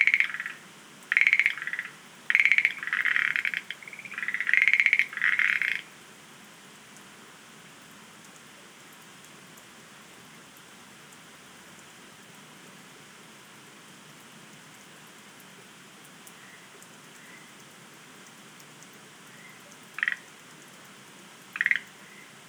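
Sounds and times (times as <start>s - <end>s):
Schlegel's green tree frog calling: 0.0s - 6.0s, 19.3s - 20.5s, 21.5s - 22.4s.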